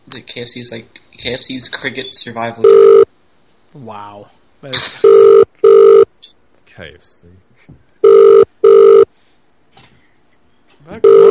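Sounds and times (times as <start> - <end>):
speech: 0.1 - 3.0, 3.7 - 5.4, 6.8 - 7.9, 10.8 - 11.2
telephone ringing: 2.6 - 3.0, 5.0 - 6.1, 8.0 - 9.1, 11.0 - 11.2.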